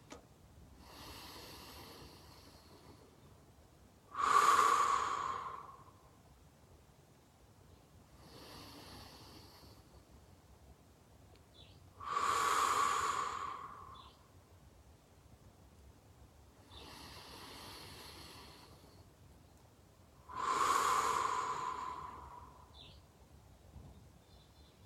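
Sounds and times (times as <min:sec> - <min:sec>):
people breathing deeply together: 0:00.8 - 0:03.3, 0:04.1 - 0:06.1, 0:08.2 - 0:10.1, 0:12.0 - 0:14.3, 0:16.7 - 0:19.1, 0:20.2 - 0:23.0.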